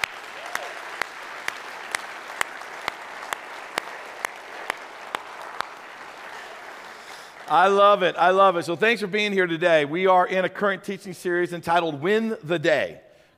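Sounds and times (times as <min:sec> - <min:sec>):
audience applause: 0:00.0 - 0:08.4
speech: 0:07.5 - 0:13.0.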